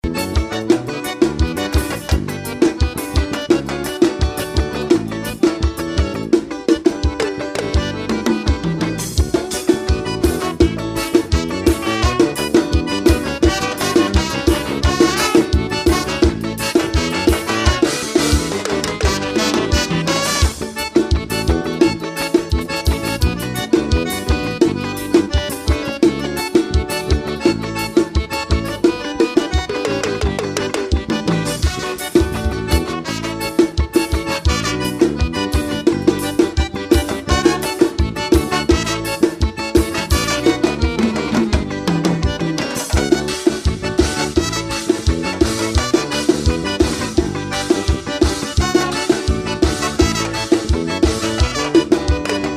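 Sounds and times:
forró band soundcheck: 0.0s - 52.5s.

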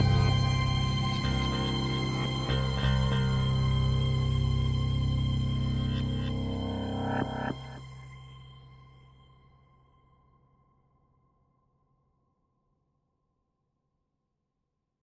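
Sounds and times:
horror music for creepypastas: 0.0s - 8.6s.

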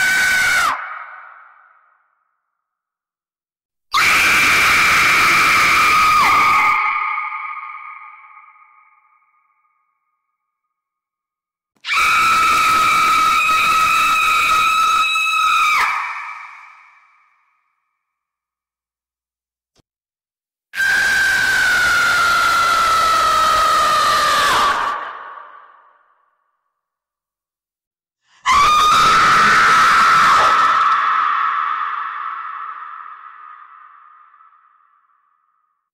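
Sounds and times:
scary screams: 0.0s - 2.0s, 4.0s - 9.2s, 11.9s - 17.2s, 20.8s - 26.0s, 28.4s - 35.4s.

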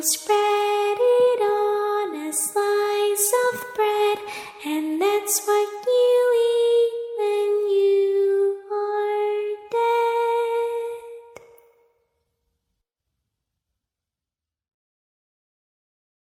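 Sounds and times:
creepy little girl singing: 0.0s - 11.6s.

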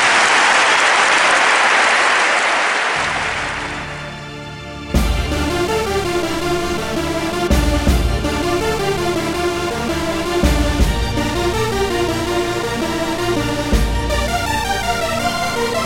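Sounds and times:
crowd applause: 0.0s - 4.3s
music with a strong beat: 5.0s - 15.8s.

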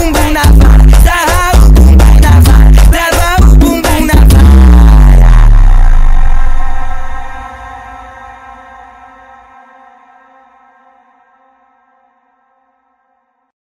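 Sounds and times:
funk music: 0.0s - 7.4s.

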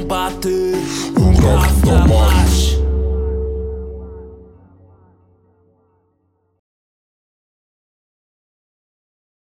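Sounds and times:
trap rap music: 0.0s - 5.6s.

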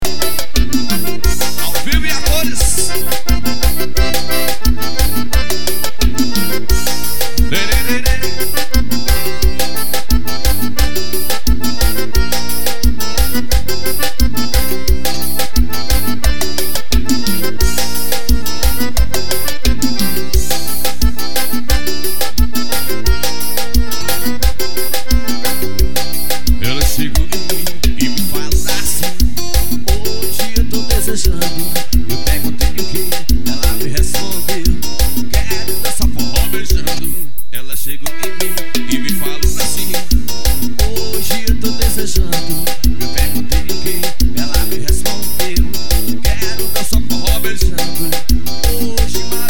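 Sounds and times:
forro music on keyboard: 0.0s - 49.4s.

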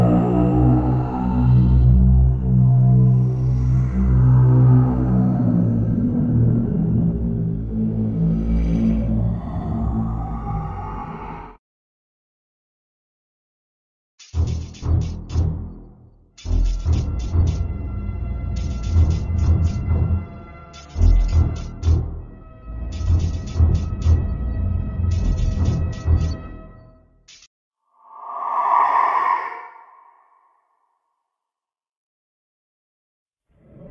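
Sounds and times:
paranormal horror sounds: 0.0s - 11.6s, 16.5s - 27.0s, 27.9s - 30.7s.

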